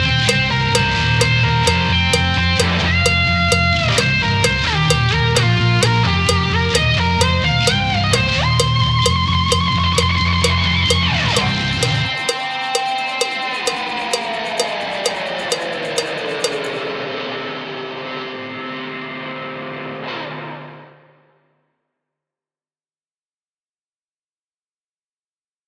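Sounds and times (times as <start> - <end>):
backing track: 0.3 - 16.8.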